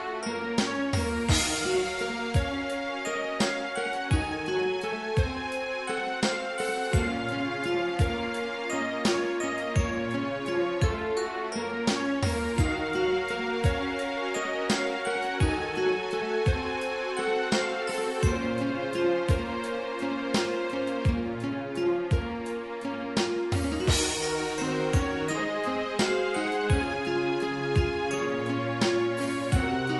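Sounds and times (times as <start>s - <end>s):
sequenced synthesizer music on a Roland SC-8850: 0.0s - 29.9s.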